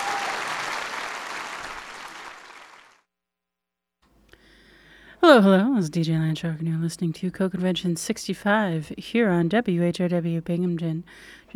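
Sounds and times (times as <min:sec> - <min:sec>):
audience applause: 0:00.0 - 0:03.0
speech: 0:05.3 - 0:11.5.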